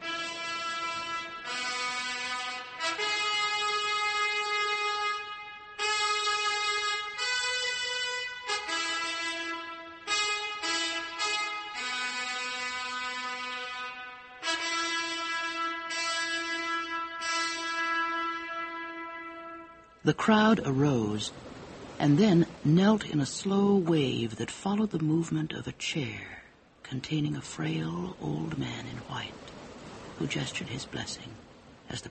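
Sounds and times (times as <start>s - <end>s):
peal of trumpets: 0.0s - 20.2s
speech: 20.0s - 29.5s, 30.2s - 32.0s.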